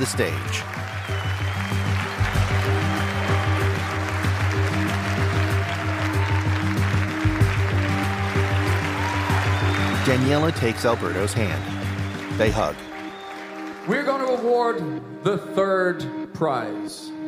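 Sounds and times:
speech: 0:00.0 - 0:01.2, 0:10.0 - 0:11.8, 0:12.4 - 0:12.9, 0:13.8 - 0:17.1
audience applause for finalists: 0:00.0 - 0:14.8.

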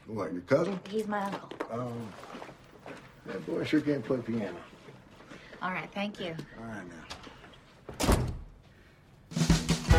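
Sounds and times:
speech: 0:00.1 - 0:02.4, 0:03.2 - 0:04.7, 0:05.6 - 0:07.2
door closing: 0:07.1 - 0:08.5.

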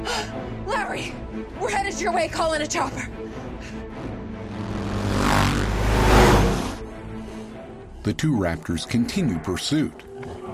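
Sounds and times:
speech: 0:00.9 - 0:03.8, 0:08.0 - 0:10.1
motorcycle accelerating: 0:04.1 - 0:06.8.

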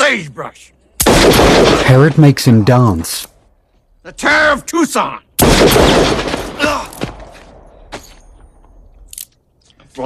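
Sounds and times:
speech: 0:00.1 - 0:03.3, 0:04.0 - 0:07.2
gunshot sound effects in a radio western gunfight scene: 0:01.0 - 0:02.4, 0:05.4 - 0:07.3.

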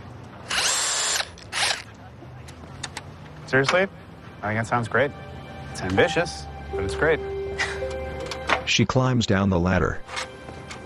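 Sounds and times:
power screwdriver driving screws: 0:00.4 - 0:01.9
speech: 0:03.5 - 0:05.2, 0:05.8 - 0:07.3, 0:08.7 - 0:10.2.

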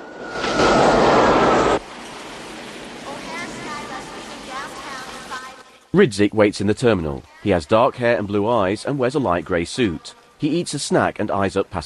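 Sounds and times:
airplane landing at an airport: 0:00.0 - 0:05.3
speech: 0:06.0 - 0:11.8.

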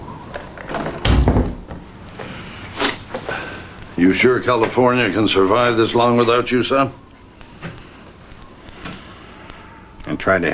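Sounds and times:
door being shut: 0:00.7 - 0:01.8
speech: 0:04.0 - 0:07.0, 0:10.3 - 0:10.5.

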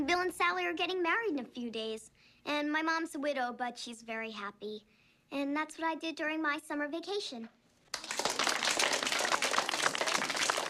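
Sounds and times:
speech: 0:00.5 - 0:07.6
children applauding in a classroom: 0:07.9 - 0:10.6.

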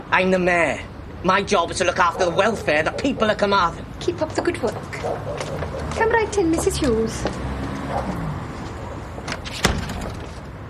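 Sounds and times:
speech: 0:00.1 - 0:08.3
door being shut: 0:09.2 - 0:10.4.

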